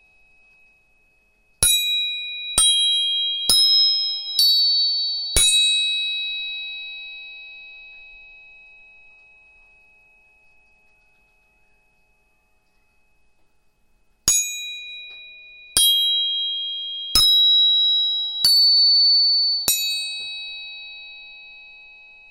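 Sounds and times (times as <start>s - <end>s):
tuning forks struck and ringing: 0.0s - 13.4s, 14.3s - 22.2s.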